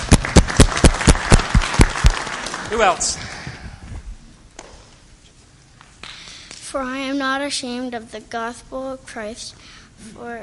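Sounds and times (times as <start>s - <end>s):
audience applause: 0.0s - 3.2s
speech: 2.7s - 3.3s, 6.7s - 10.4s.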